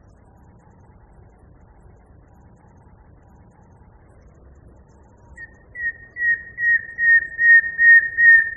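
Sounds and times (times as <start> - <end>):
common nightingale singing: 5.4 - 8.5.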